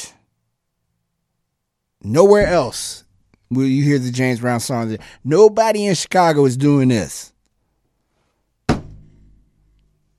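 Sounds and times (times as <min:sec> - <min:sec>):
speech: 0:02.0 - 0:07.3
hand slamming down on desk: 0:08.7 - 0:09.2.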